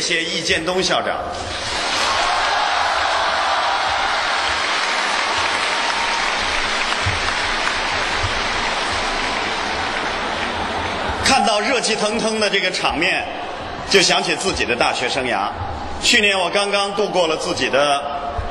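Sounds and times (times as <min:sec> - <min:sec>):
speech: 0:00.0 - 0:02.0, 0:11.3 - 0:18.1
warm audience applause: 0:01.5 - 0:11.3.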